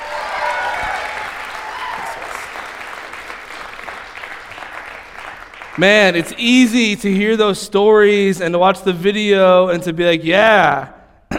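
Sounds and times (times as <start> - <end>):
audience applause at a worship gathering: 0.0 - 6.2
speech: 5.8 - 11.0.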